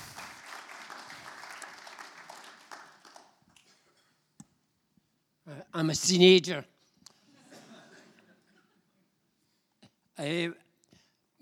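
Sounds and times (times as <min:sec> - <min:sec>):
audience applause: 0:00.0 - 0:03.4
speech: 0:05.8 - 0:06.7, 0:10.2 - 0:10.6.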